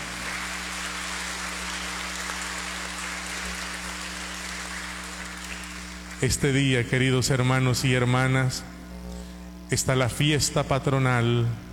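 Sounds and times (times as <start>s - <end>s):
audience applause: 0.0s - 6.3s
speech: 6.2s - 8.7s, 9.7s - 11.7s.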